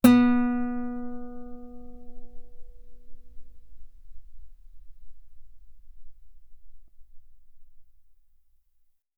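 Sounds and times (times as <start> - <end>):
guitar B3 note on B string played fortissimo: 0.0 - 7.3.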